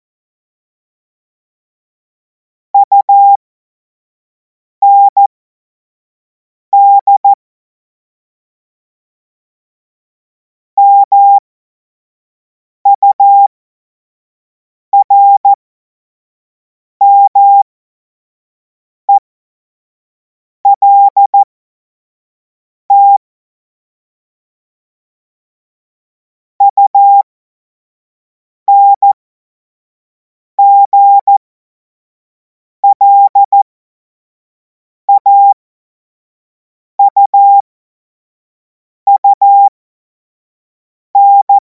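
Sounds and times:
Morse code course tones: 0:02.8 - 0:03.4, 0:04.8 - 0:05.2, 0:06.8 - 0:07.3, 0:10.8 - 0:11.4, 0:12.9 - 0:13.5, 0:15.0 - 0:15.6, 0:17.0 - 0:17.6, 0:20.7 - 0:21.5, 0:22.9 - 0:23.2, 0:26.6 - 0:27.2, 0:28.7 - 0:29.2, 0:30.6 - 0:31.4, 0:32.8 - 0:33.6, 0:35.1 - 0:35.6, 0:37.0 - 0:37.6, 0:39.1 - 0:39.7, 0:41.2 - 0:41.6.

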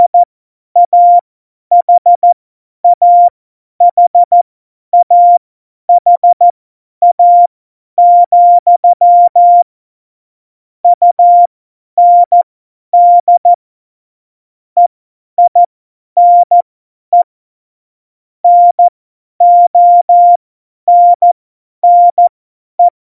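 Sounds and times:
CW morse code beeps: 0:00.0 - 0:02.4, 0:03.0 - 0:04.4, 0:05.0 - 0:06.4, 0:07.0 - 0:09.7, 0:10.9 - 0:12.4, 0:13.0 - 0:13.5, 0:15.4 - 0:17.3, 0:18.4 - 0:22.9.

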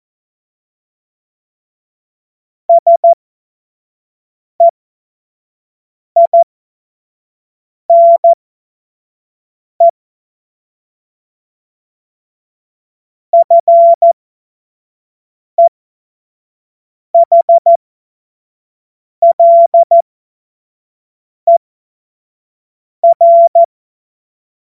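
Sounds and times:
CW Morse code beeps: 0:02.7 - 0:03.2, 0:06.2 - 0:06.4, 0:07.9 - 0:08.4, 0:13.4 - 0:14.2, 0:17.2 - 0:17.8, 0:19.2 - 0:20.0, 0:23.0 - 0:23.7.

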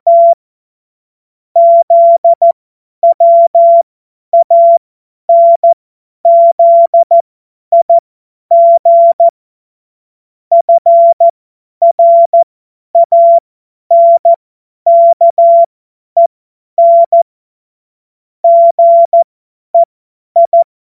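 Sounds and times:
CW Morse code beeps: 0:00.1 - 0:00.4, 0:01.6 - 0:03.8, 0:04.4 - 0:07.2, 0:07.8 - 0:09.3, 0:10.5 - 0:15.7, 0:16.8 - 0:17.2, 0:18.4 - 0:19.2, 0:19.8 - 0:20.7.

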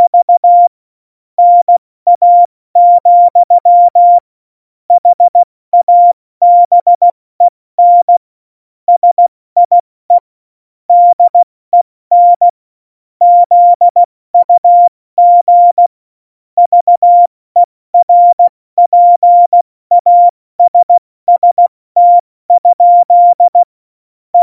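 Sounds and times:
CW Morse code at tempo 70: 0:00.0 - 0:00.7, 0:01.4 - 0:04.2, 0:04.9 - 0:08.2, 0:08.9 - 0:10.2, 0:10.9 - 0:11.5, 0:12.1 - 0:12.6, 0:13.2 - 0:15.9, 0:16.6 - 0:23.7.

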